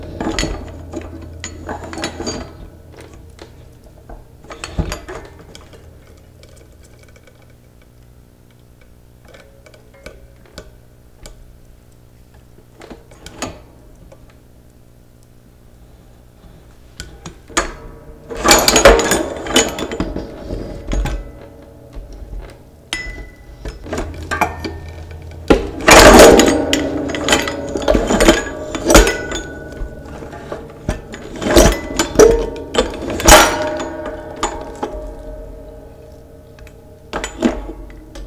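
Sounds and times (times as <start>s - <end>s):
zither bells: 18.3s - 38.2s.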